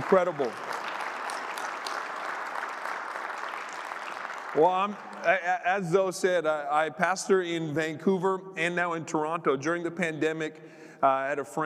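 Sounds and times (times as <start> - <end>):
speech: 0.0 - 0.8, 4.6 - 11.6
audience applauding and cheering: 0.0 - 5.6.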